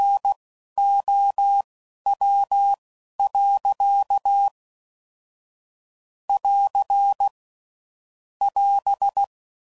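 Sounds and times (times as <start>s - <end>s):
CW Morse code groups at 10 WPM: 0.0s - 4.5s, 6.3s - 7.3s, 8.4s - 9.3s.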